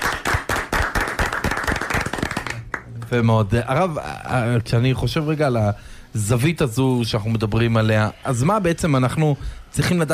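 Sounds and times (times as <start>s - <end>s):
applause for a rabbi: 0.0s - 2.9s
speech: 3.1s - 10.1s.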